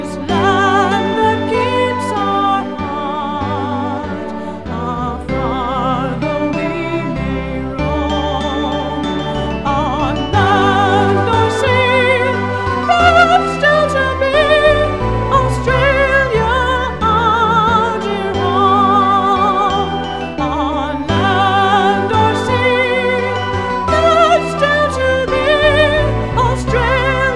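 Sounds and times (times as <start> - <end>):
SATB choir singing: 0.0 - 27.3.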